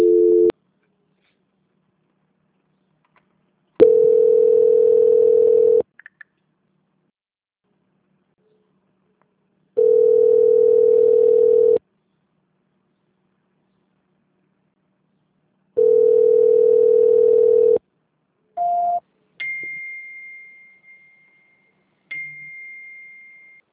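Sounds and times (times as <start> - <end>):
telephone line tones while a call is being transferred: 0.0 - 0.5, 3.8 - 5.8, 9.8 - 11.8, 15.8 - 17.8.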